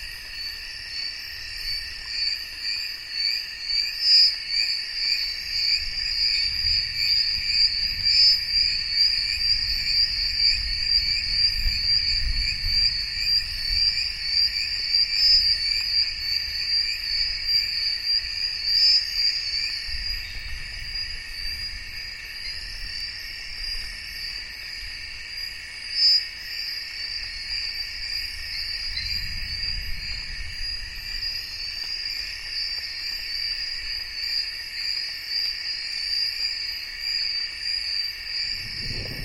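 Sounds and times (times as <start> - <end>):
night rainforest insect chorus: 0.0 - 39.2
thunder rumbling: 38.5 - 39.2.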